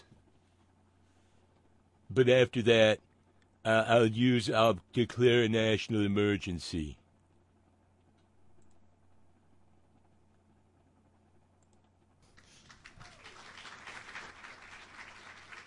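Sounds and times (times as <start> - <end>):
speech: 2.1 - 7.0
tepid audience applause at a political speech: 12.2 - 15.6.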